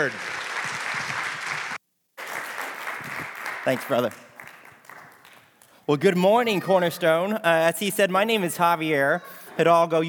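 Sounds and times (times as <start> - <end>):
speech: 0.0 - 0.4, 3.7 - 4.3, 5.9 - 10.0
morning church congregation clapping to welcome a guest speaker: 0.0 - 7.4.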